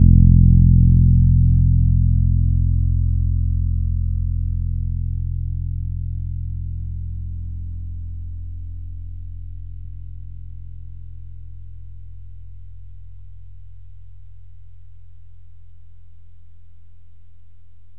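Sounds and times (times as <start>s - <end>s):
low D string: 0.0s - 6.2s.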